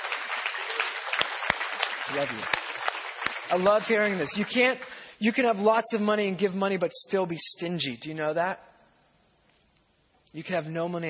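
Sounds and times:
round of applause: 0:00.0 - 0:05.0
speech: 0:02.1 - 0:02.6, 0:03.5 - 0:08.7, 0:10.3 - 0:11.0.

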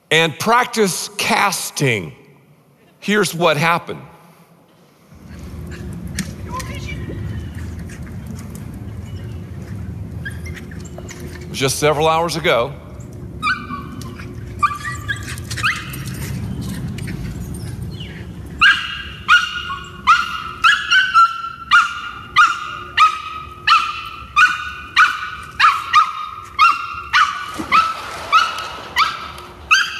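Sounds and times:
speech: 0:00.1 - 0:02.2, 0:03.0 - 0:04.1, 0:11.6 - 0:12.8
rescued dog barking: 0:18.6 - 0:29.9.

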